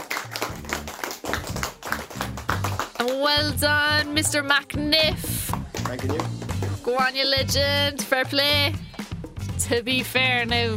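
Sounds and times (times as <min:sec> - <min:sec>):
class applauding: 0:00.0 - 0:03.3, 0:05.8 - 0:06.4
speech: 0:03.2 - 0:08.8, 0:09.6 - 0:10.7.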